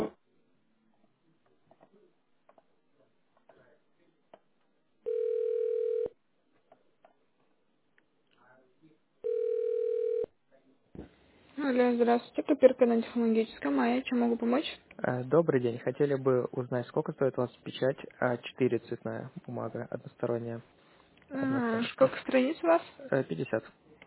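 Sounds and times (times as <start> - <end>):
telephone ringing tone while on hold: 5.0 - 6.2, 9.2 - 10.3
recorded voice speaking: 10.5 - 24.0
speech: 11.7 - 23.8.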